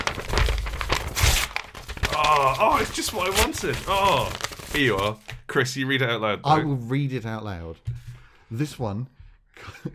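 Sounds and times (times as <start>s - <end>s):
wrapping paper crinkling and tearing as a Christmas present is opened: 0.0s - 5.4s
speech: 2.6s - 7.9s, 8.5s - 9.9s.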